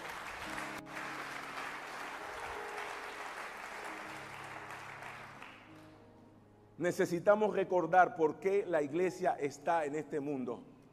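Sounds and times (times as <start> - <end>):
audience applause: 0.0 - 6.0
speech: 6.8 - 10.7.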